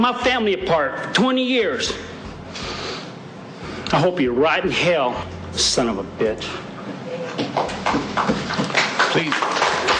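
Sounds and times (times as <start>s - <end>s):
speech: 0.0s - 2.6s, 3.9s - 6.7s, 9.2s - 9.5s
applause in a courtroom: 7.6s - 9.9s.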